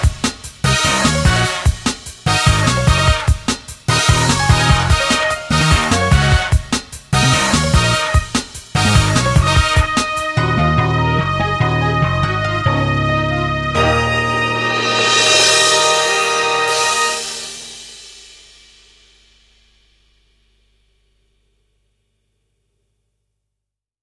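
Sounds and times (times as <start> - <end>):
swing music: 0.0 - 18.9.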